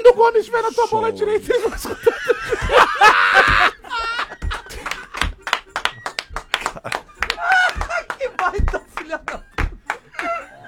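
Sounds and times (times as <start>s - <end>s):
speech: 0.0s - 2.3s
people laughing: 1.4s - 10.6s
hand tapping on the left corner of a table: 1.8s - 10.3s.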